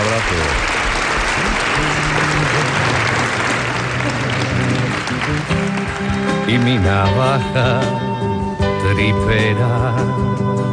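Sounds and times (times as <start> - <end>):
audience applause: 0.0 - 7.6
speech: 6.6 - 8.0, 9.0 - 10.5.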